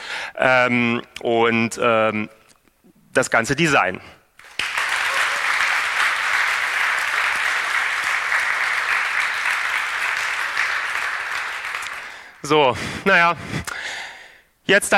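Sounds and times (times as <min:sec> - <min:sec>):
speech: 0:00.4 - 0:02.4, 0:03.2 - 0:04.2, 0:12.4 - 0:14.0, 0:14.7 - 0:14.9
audience applause: 0:04.4 - 0:12.4.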